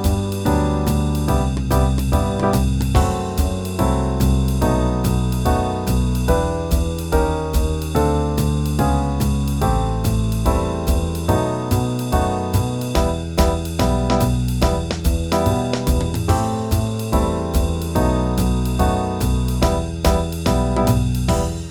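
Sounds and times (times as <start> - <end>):
jazz backing track in E minor: 0.0 - 21.7.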